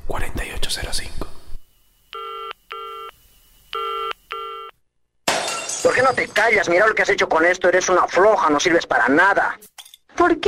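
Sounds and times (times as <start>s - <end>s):
speech: 0.7s - 1.2s, 6.0s - 10.4s
telephone ringing: 2.1s - 3.2s, 3.8s - 4.8s.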